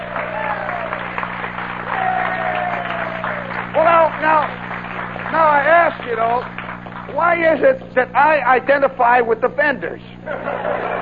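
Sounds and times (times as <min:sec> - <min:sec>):
audience applause: 0:00.0 - 0:07.4, 0:10.5 - 0:11.0
speech: 0:07.1 - 0:10.9
laughter: 0:10.2 - 0:11.0.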